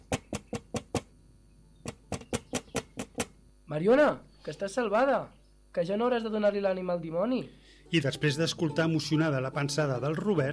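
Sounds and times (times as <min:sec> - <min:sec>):
knocking on a window pane: 0:00.0 - 0:01.1, 0:01.8 - 0:03.4
speech: 0:03.7 - 0:10.5.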